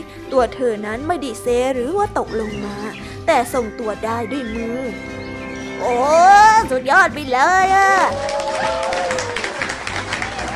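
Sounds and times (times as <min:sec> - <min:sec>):
speech: 0:00.3 - 0:05.2, 0:05.8 - 0:08.8
person cheering: 0:05.8 - 0:06.7, 0:07.6 - 0:10.5
person clapping: 0:08.0 - 0:10.5.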